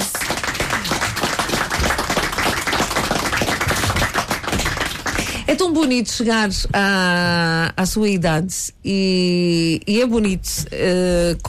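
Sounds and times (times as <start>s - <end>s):
applause: 0.0s - 5.5s
speech: 5.5s - 11.4s.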